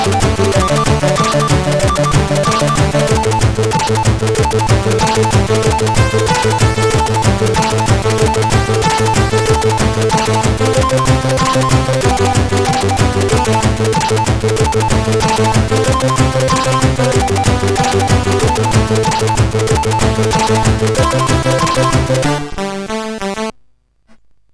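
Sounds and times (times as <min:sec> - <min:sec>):
SID chip CSG8580R5 chiptune remix: 0:00.0 - 0:23.5.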